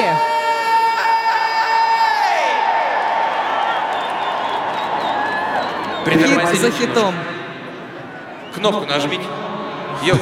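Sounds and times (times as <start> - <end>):
shouts: 0.0 - 5.8
large audience cheering and applauding: 2.0 - 6.6
speech: 6.1 - 7.3, 8.6 - 10.1.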